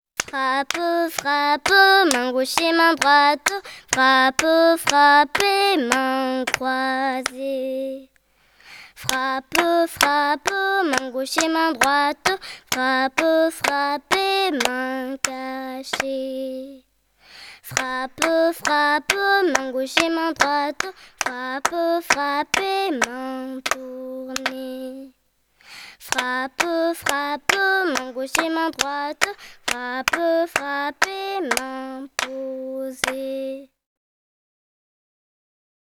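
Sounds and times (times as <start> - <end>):
chanting: 0.2 - 8.1, 9.0 - 16.8, 17.6 - 25.2, 26.0 - 33.7.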